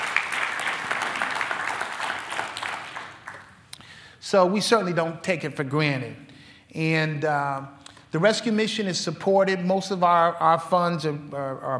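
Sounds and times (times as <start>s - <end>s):
audience hand clapping: 0.0s - 3.7s
speech: 4.2s - 11.7s.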